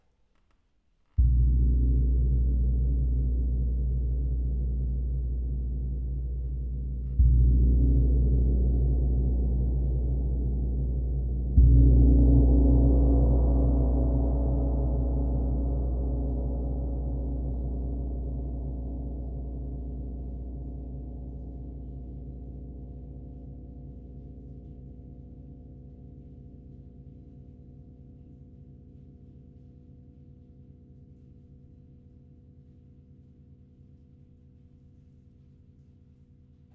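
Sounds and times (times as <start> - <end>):
gong: 1.2 - 29.7.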